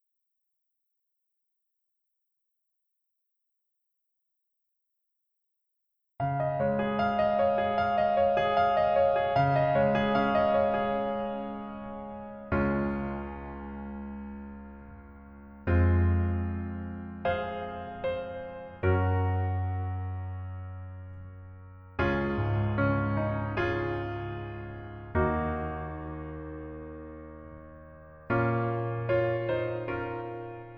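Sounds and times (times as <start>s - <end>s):
piano music: 6.2s - 30.7s.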